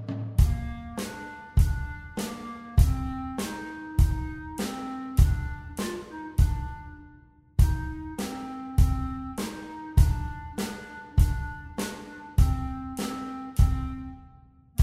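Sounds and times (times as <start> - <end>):
clarinet playing rock: 0.4 - 14.2.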